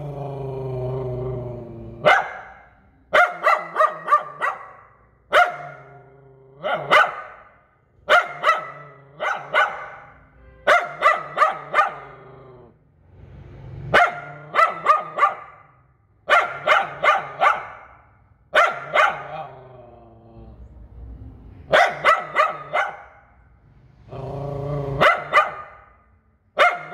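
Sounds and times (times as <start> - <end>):
poodle yapping: 2.0 - 12.4, 13.9 - 19.8, 21.6 - 23.4, 24.9 - 26.9.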